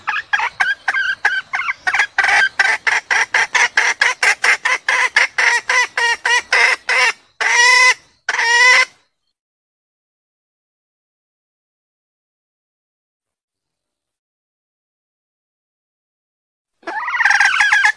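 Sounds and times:
junglefowl clucking: 0.0 - 9.0, 16.8 - 17.9.

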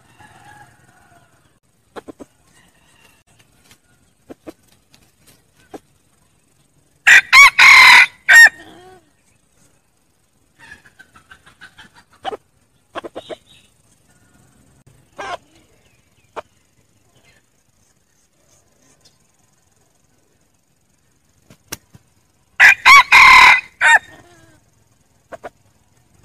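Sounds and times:
red junglefowl crowing: 0.0 - 1.6, 2.4 - 4.0, 7.0 - 8.9, 22.6 - 24.6.

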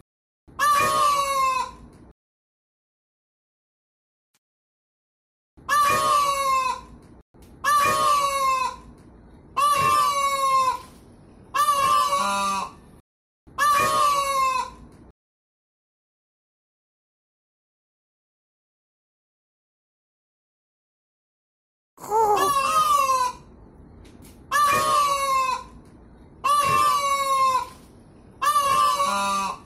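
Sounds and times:
peafowl braying calls: 0.6 - 1.8, 5.7 - 7.0, 7.6 - 8.9, 9.6 - 12.8, 13.6 - 14.8, 22.1 - 23.5, 24.5 - 25.8, 26.4 - 29.6.

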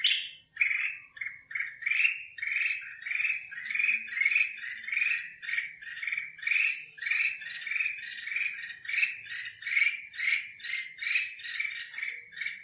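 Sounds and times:
black-crested bulbul singing: 0.0 - 12.6.

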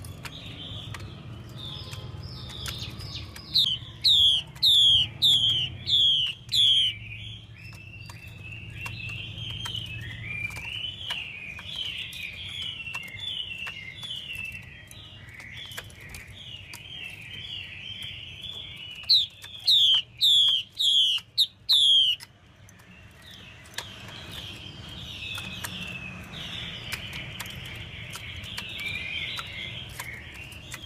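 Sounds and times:
Chinese hwamei singing warbled whistles: 3.5 - 15.4, 17.3 - 22.2.

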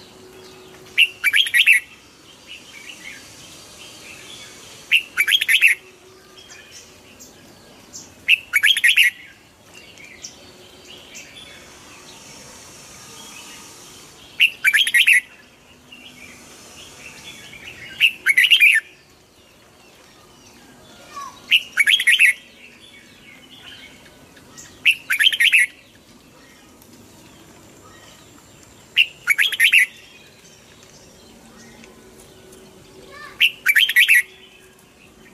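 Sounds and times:
red-whiskered bulbul song: 0.0 - 19.3, 20.0 - 26.8, 27.4 - 35.3
faint soft bird chatter: 0.0 - 35.3.

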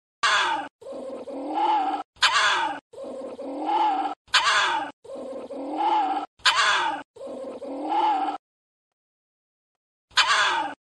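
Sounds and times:
small Indian civet moaning: 0.2 - 8.4.

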